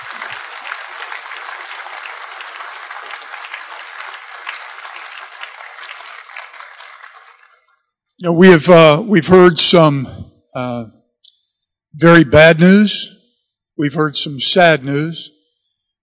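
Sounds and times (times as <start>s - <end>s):
large audience applause: 0.0s - 7.7s
speech: 8.2s - 11.0s, 12.0s - 13.1s, 13.8s - 15.3s.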